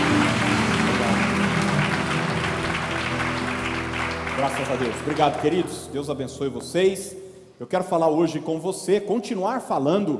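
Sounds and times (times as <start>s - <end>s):
crowd applauding: 0.0s - 5.9s
speech: 4.4s - 10.1s.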